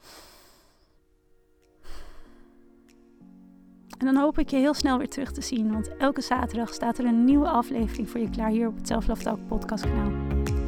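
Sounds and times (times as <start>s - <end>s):
deep breath taken together: 0.0s - 1.0s, 1.8s - 2.7s
speech: 4.0s - 10.4s.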